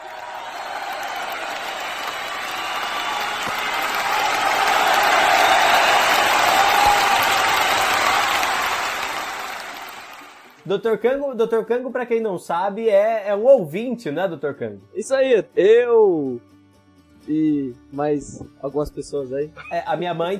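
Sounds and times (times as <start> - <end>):
applause: 0.0 - 10.9
speech: 10.7 - 16.5, 17.3 - 20.3.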